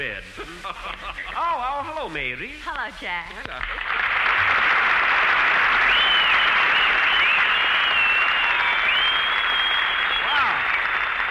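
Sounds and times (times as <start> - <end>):
speech: 0.0 - 4.7
laughter: 0.3 - 1.8
audience applause: 3.6 - 11.2
whistles: 5.7 - 10.9.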